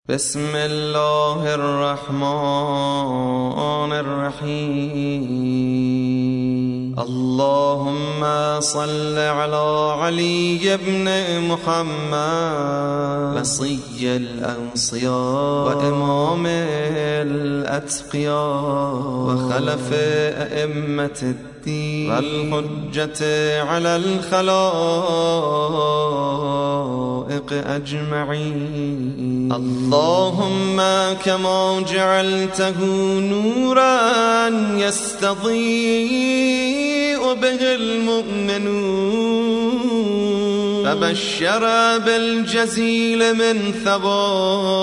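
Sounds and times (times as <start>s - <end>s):
religious recitation: 0.1s - 44.8s.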